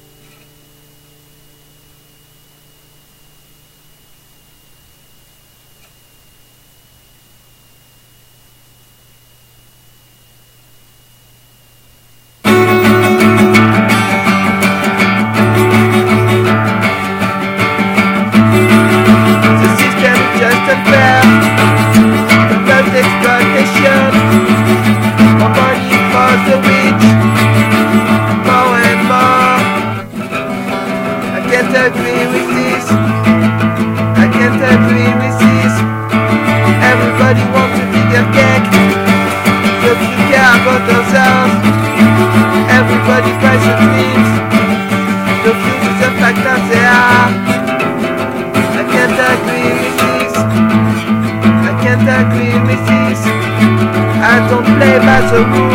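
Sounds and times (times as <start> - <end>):
acoustic session music: 12.4 - 55.7.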